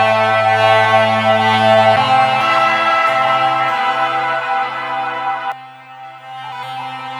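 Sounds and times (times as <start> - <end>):
sad keys loop: 0.1 - 5.5.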